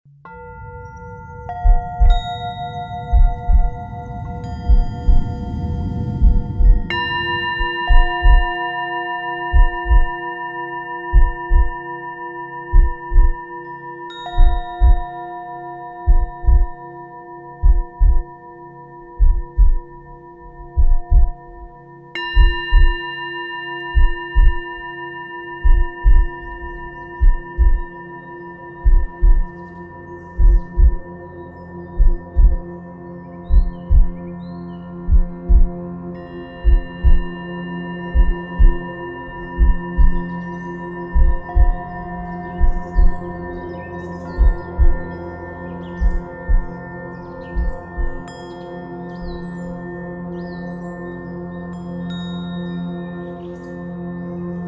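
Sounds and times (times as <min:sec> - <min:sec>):
heart chakra sound healing music: 0:00.1 - 0:54.6.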